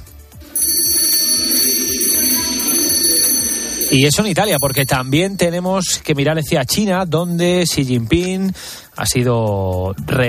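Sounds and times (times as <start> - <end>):
ceremonial handbell ringing: 0.4 - 5.7, 7.2 - 8.1
speech: 3.9 - 10.2.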